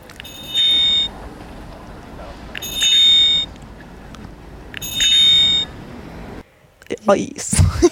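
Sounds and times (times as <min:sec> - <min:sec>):
low rumble: 0:00.0 - 0:06.4
electronic bicycle bell chiming: 0:00.2 - 0:01.1, 0:02.6 - 0:03.5, 0:04.8 - 0:05.7
speech: 0:07.1 - 0:07.9.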